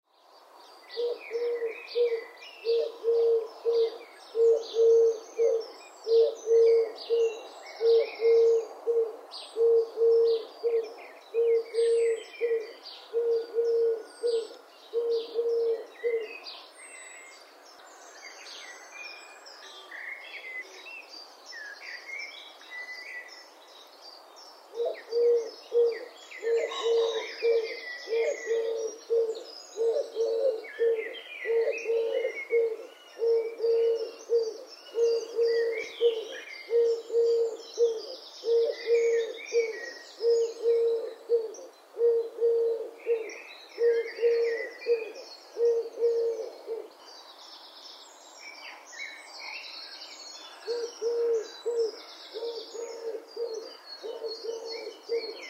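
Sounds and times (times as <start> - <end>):
ringed turtle dove calling: 1.0 - 16.4, 24.7 - 46.9, 50.6 - 55.4.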